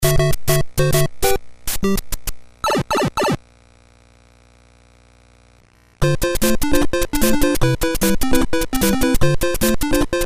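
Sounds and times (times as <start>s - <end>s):
Famicom game console sound: 0.0s - 3.4s, 6.0s - 10.2s.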